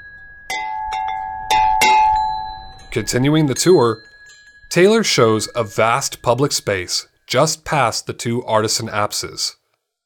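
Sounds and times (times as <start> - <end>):
bronze bell being struck: 0.0 - 8.5
speech: 2.9 - 4.1, 4.7 - 9.6.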